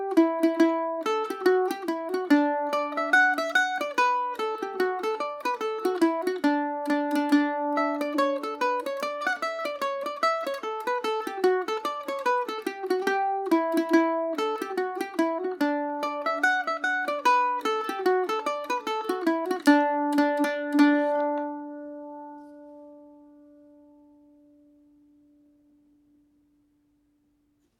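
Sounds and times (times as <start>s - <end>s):
Irish mandolin playing a hornpipe in D major on a Macaferri mandolin: 0.0s - 26.3s.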